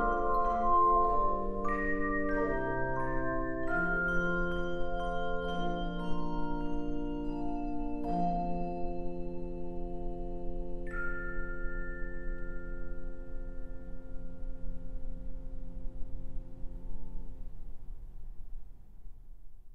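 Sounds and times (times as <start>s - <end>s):
three to five octave handbells playing: 0.0s - 14.7s.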